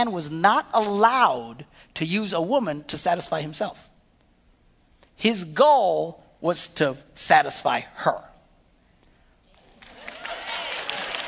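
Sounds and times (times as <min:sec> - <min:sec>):
speech: 0:00.0 - 0:03.9, 0:05.2 - 0:08.3
group of women clapping: 0:09.5 - 0:11.2.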